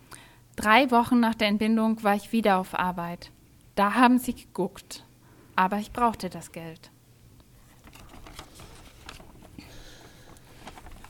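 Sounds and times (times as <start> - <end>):
speech: 0.6 - 6.9
paper fluttering and rustling: 7.6 - 11.0.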